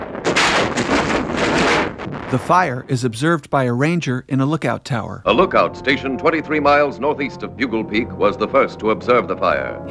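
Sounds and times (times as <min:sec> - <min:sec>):
lightning strike thunderclap: 0:00.0 - 0:03.4
speech: 0:02.3 - 0:09.9.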